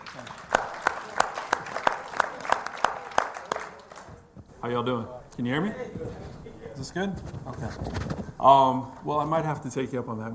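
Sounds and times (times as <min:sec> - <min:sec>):
audience applause: 0:00.0 - 0:04.4
speech: 0:04.6 - 0:10.3.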